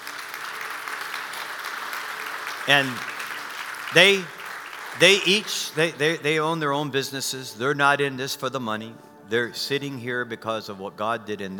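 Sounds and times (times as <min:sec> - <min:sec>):
audience applauding to welcome guests onto a stage: 0:00.0 - 0:06.4
speech: 0:02.6 - 0:03.1, 0:03.9 - 0:04.4, 0:05.0 - 0:11.5.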